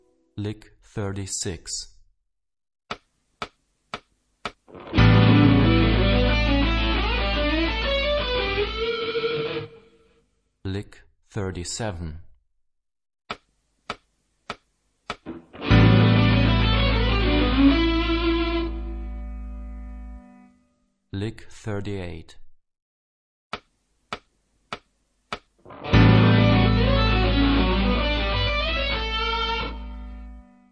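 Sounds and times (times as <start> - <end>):
rock guitar: 4.7 - 10.0, 15.2 - 19.4, 25.6 - 30.4.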